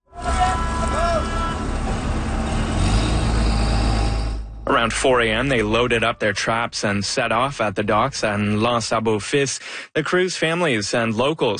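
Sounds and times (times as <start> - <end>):
lobster fishing boat engines revving in the Gaspé region: 0.1 - 6.6
speech: 4.8 - 11.5.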